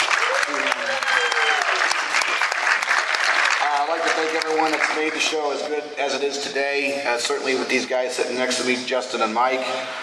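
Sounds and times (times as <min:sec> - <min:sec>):
audience applause: 0:00.0 - 0:05.5
speech: 0:04.6 - 0:10.0.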